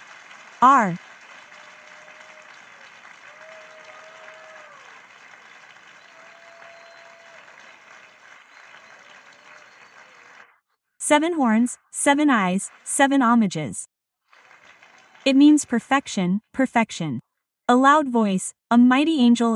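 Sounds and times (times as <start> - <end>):
audience applause: 0.0 - 10.6, 12.2 - 13.2, 14.2 - 15.3
speech: 0.6 - 1.1, 11.1 - 13.9, 15.2 - 19.5.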